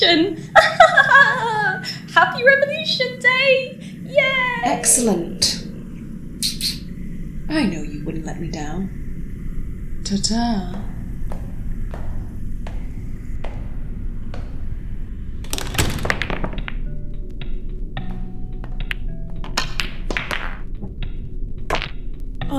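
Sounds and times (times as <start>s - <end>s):
speech: 0.0s - 5.6s, 7.5s - 9.0s, 10.1s - 10.9s
low rumble: 0.0s - 22.5s
laughter: 0.4s - 2.0s
pool balls clicking as a cue ball is struck into a pocket: 11.9s - 22.0s.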